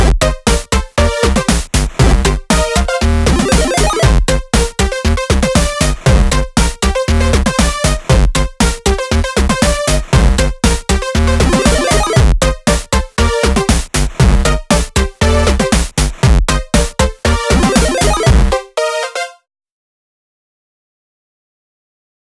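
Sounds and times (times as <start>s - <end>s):
8-bit arcade background music: 0.0s - 15.8s, 16.5s - 19.4s.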